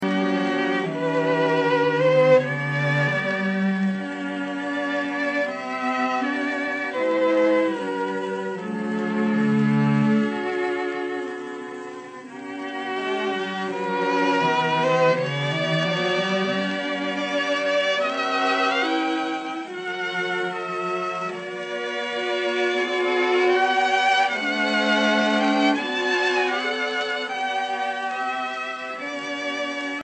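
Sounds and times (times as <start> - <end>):
string quartet playing: 0.0 - 30.0.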